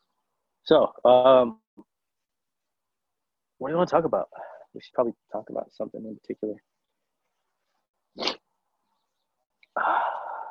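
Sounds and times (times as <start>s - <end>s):
speech: 0.7s - 1.6s, 3.6s - 6.7s, 8.2s - 8.4s, 9.8s - 10.0s
sneeze: 8.2s - 8.4s.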